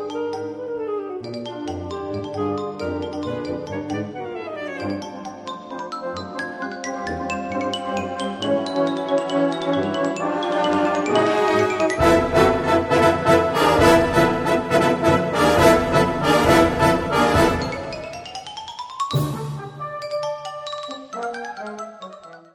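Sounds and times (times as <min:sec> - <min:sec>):
xylophone: 0:01.4 - 0:14.8, 0:15.7 - 0:22.4
fanfare band playing: 0:10.5 - 0:18.4, 0:19.1 - 0:20.6.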